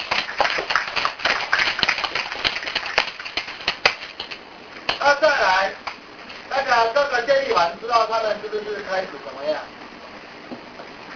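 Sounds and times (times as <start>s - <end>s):
audience clapping: 0.0s - 5.1s
speech: 6.8s - 9.8s.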